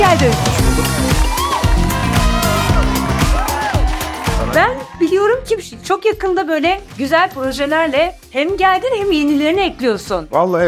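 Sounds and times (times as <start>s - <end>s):
audience applause and cheering: 0.0s - 5.5s
music playing: 0.0s - 10.6s
speech: 0.2s - 0.5s, 5.9s - 10.6s.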